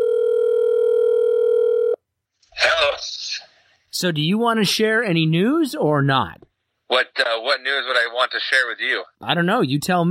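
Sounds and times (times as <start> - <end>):
telephone dial tone of outgoing call: 0.0 - 2.0
speech: 4.0 - 10.0
voice speaking over the telephone line: 4.0 - 10.0.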